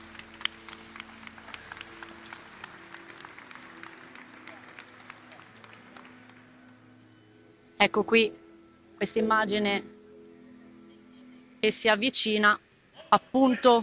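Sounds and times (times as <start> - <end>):
applause in a cathedral: 0.0 - 7.2
speech: 7.8 - 8.4, 9.0 - 9.9, 11.6 - 13.8.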